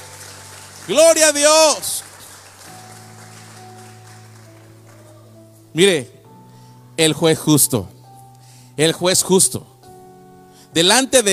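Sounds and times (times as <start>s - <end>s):
audience applause: 0.0s - 5.3s
speech: 0.8s - 2.0s, 5.8s - 6.2s, 7.0s - 8.0s, 8.8s - 9.7s, 10.8s - 11.3s.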